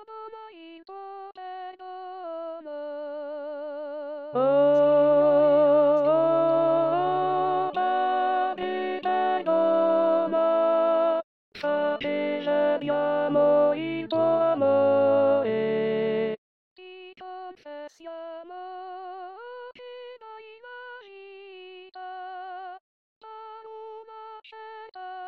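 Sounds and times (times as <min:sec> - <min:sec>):
contralto voices singing: 0:04.3 - 0:16.4.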